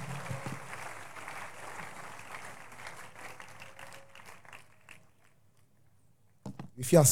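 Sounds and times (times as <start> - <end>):
crowd clapping: 0.0 - 5.4.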